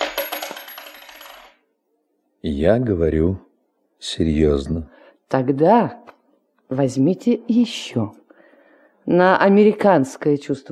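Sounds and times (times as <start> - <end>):
single coin dropped onto a hard surface: 0.0 - 1.7
speech: 2.4 - 6.1, 6.7 - 8.2, 9.1 - 10.6.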